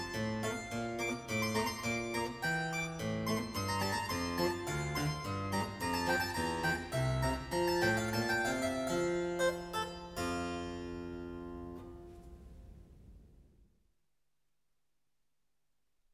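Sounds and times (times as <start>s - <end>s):
classical piano piece in F: 0.0s - 12.1s.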